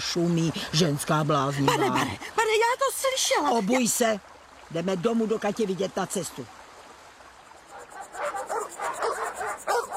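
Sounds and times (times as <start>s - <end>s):
speech: 0.0s - 6.6s
several dogs barking at a visitor: 7.7s - 9.9s.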